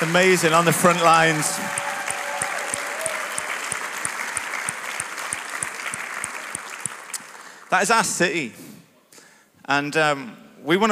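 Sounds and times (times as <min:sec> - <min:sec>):
speech: 0:00.0 - 0:01.8, 0:07.7 - 0:08.6, 0:09.7 - 0:10.9
audience applause: 0:00.0 - 0:07.7.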